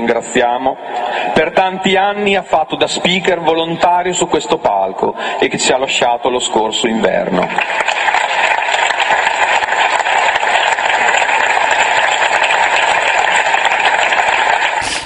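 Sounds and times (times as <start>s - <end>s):
speech: 0.0s - 8.2s
audience applause: 7.2s - 15.0s.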